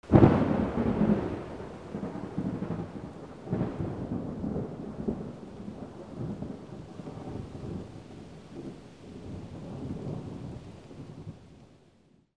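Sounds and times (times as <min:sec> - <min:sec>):
rain: 0:00.0 - 0:12.3.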